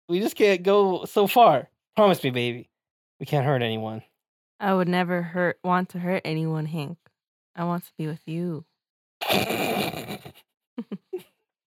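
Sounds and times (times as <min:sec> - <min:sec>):
speech: 0:00.1 - 0:07.0, 0:07.6 - 0:10.0, 0:10.8 - 0:11.7
zipper being unzipped: 0:09.2 - 0:10.3.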